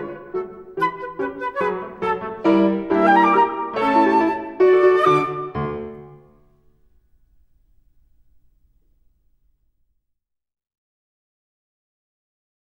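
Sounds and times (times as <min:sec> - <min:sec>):
flute playing classical piece: 0:00.0 - 0:06.2.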